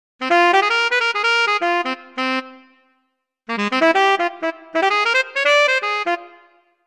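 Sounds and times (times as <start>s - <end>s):
tenor saxophone: 0.2s - 6.8s.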